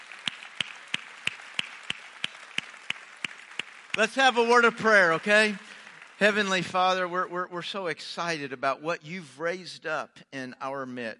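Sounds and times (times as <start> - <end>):
audience applauding: 0.0 - 7.3
speech: 4.0 - 11.1.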